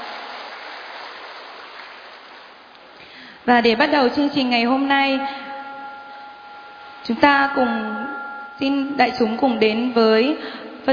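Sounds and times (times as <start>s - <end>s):
audience applause: 0.0s - 3.0s
speech: 3.4s - 5.4s, 7.1s - 8.0s, 8.6s - 10.9s.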